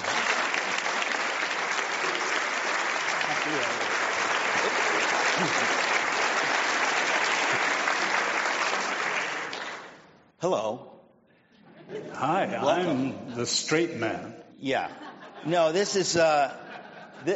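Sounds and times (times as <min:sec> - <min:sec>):
audience applause: 0:00.0 - 0:10.1
laughter: 0:04.4 - 0:06.2, 0:11.6 - 0:12.6, 0:14.8 - 0:17.3
speech: 0:10.4 - 0:10.9, 0:12.2 - 0:16.6.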